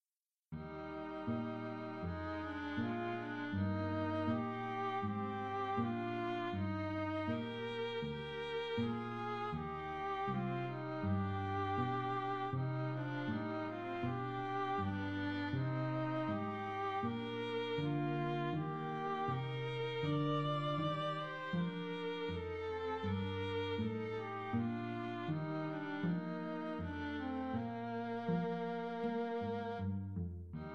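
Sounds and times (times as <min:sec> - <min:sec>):
string trio playing: 0:00.6 - 0:30.7.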